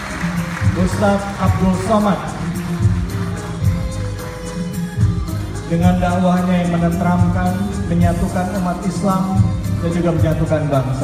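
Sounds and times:
crowd at an award ceremony applauding and cheering: 0.0 - 5.7
speech: 0.8 - 2.4, 5.7 - 11.0.

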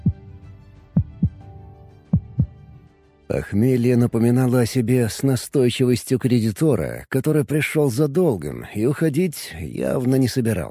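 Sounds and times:
heartbeat pounding: 0.0 - 0.3, 1.0 - 1.4, 2.1 - 2.6
speech: 3.3 - 10.6.

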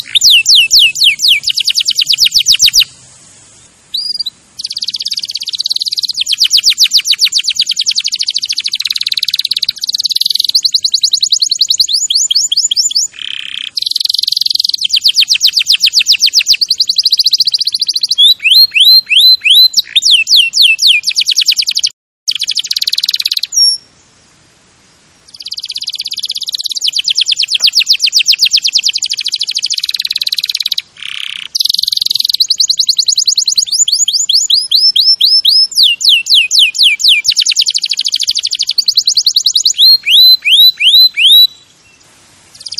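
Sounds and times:
canary song: 0.0 - 42.7.

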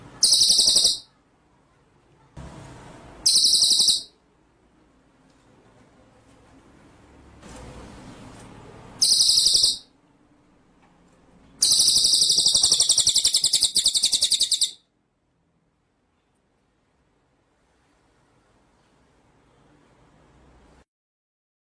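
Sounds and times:
white-rumped shama singing: 0.0 - 1.1, 3.2 - 4.2, 9.0 - 10.0, 11.6 - 14.9.

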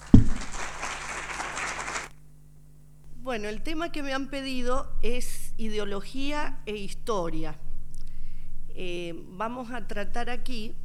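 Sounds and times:
audience clapping to welcome a speaker at a history conference: 0.0 - 2.2
speech: 3.3 - 7.6, 8.8 - 10.8.

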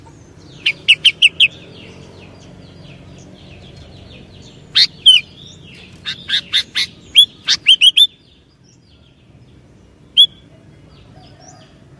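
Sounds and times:
Sooty-headed bulbul song: 0.4 - 9.1, 10.1 - 10.4.

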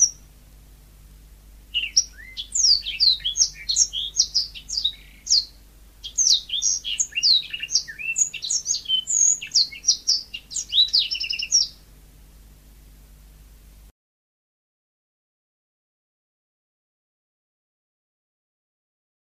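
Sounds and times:
Oriental magpie-robin song: 0.0 - 0.4, 1.7 - 11.9.

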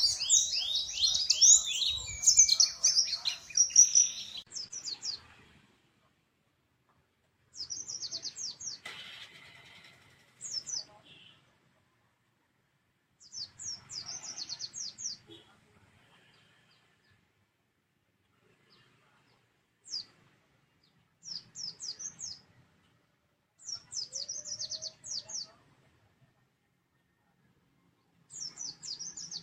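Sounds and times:
white-eye twittering song with descending chirps: 0.0 - 5.0.

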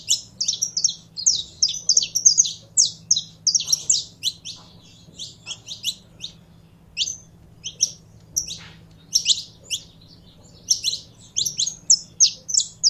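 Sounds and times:
Belgian canary singing: 0.0 - 12.8
faint low hum: 0.0 - 12.8.

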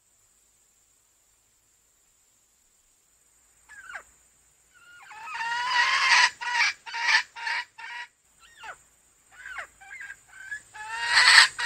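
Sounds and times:
female junglefowl clucking: 3.7 - 4.1, 4.8 - 11.6.

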